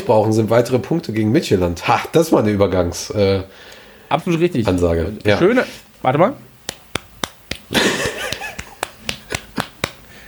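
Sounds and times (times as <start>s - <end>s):
speech: 0.0s - 6.4s
rhythmic hand claps: 6.6s - 10.1s
laughter: 7.7s - 9.8s.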